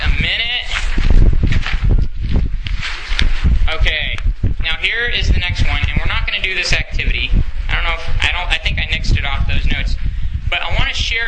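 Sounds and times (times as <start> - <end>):
loud wind outdoors: 0.0 - 11.2.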